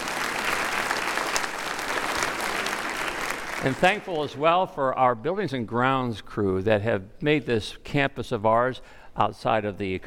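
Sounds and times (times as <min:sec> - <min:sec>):
crowd clapping: 0:00.0 - 0:04.6
speech: 0:03.6 - 0:10.0.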